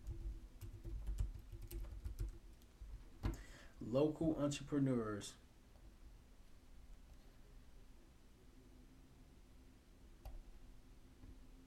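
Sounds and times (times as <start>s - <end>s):
typing on a computer keyboard: 0.0s - 3.4s
speech: 3.9s - 5.4s.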